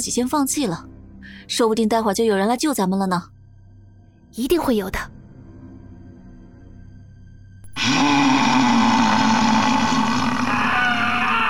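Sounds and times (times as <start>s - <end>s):
speech: 0.0s - 3.3s, 4.3s - 5.0s
fearsome beast roaring: 7.7s - 11.4s
people screaming: 7.8s - 11.4s.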